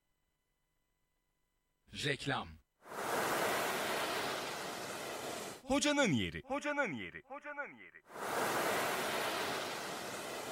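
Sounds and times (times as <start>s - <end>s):
speech: 1.9s - 2.6s, 5.7s - 9.7s
sea waves washing onto a sandy beach: 2.9s - 5.6s, 8.1s - 10.5s.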